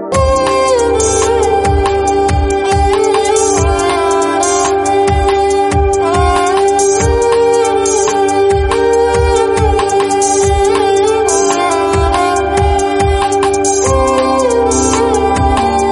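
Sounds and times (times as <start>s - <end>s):
sarangi playing: 0.1s - 15.9s.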